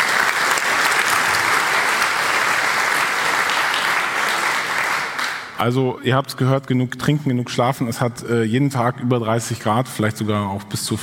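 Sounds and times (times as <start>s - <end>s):
audience applause: 0.0s - 5.6s
speech: 5.6s - 11.0s.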